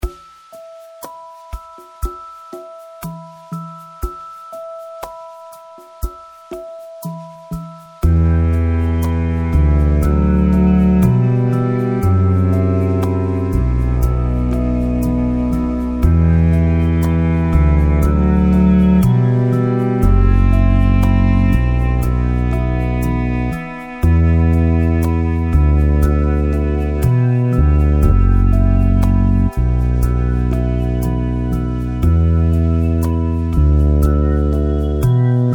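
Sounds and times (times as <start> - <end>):
sad song: 6.9 - 35.5.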